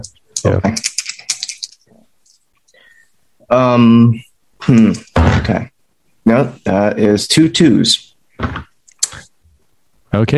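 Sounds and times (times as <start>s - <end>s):
speech: 0.0s - 0.9s, 3.5s - 5.7s, 6.3s - 8.7s, 10.1s - 10.3s
two dice rolling: 0.4s - 1.8s.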